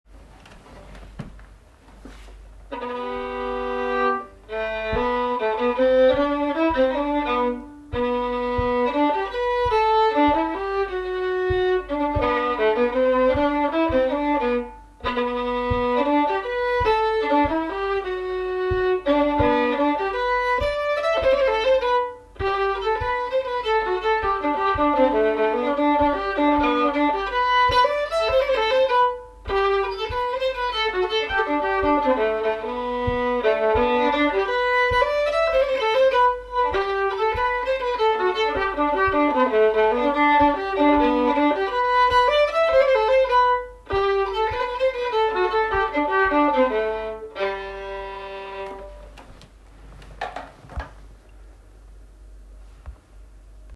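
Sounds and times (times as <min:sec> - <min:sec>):
Swedish polska folk dance tune: 0:02.0 - 0:49.4.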